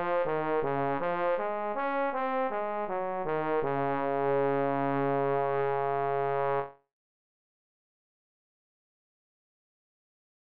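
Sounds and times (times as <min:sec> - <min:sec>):
trombone: 0:00.0 - 0:06.8.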